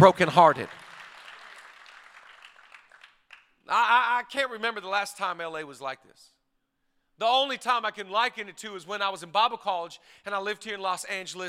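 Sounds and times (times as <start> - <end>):
speech: 0.0 - 0.8, 3.7 - 6.4, 7.2 - 11.4
audience clapping: 0.0 - 3.6.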